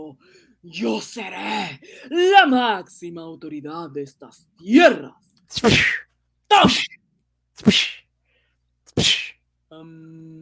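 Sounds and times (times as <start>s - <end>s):
speech: 0.1s - 6.9s, 7.6s - 8.0s, 9.0s - 10.4s
whip lashing a man's back in a radio drama: 5.5s - 6.0s, 6.6s - 7.0s, 7.6s - 8.0s, 9.0s - 9.3s.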